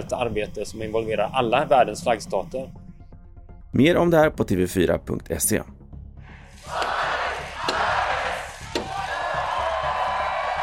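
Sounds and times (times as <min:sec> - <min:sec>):
speech: 0:00.1 - 0:02.8, 0:03.7 - 0:05.8
crowd cheering at Oktoberfest opening: 0:06.6 - 0:10.6.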